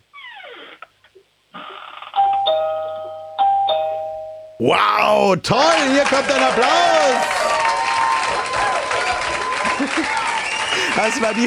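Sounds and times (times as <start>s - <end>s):
doorbell ringing: 2.2s - 4.7s
speech: 4.6s - 7.4s, 11.0s - 11.4s
laughter: 4.6s - 11.4s.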